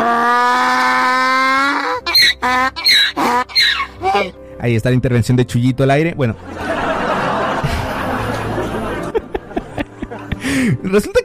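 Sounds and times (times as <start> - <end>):
donkey braying sound effect: 0.0 - 4.4
speech: 2.6 - 6.9, 10.6 - 11.2
laughter: 6.4 - 10.6.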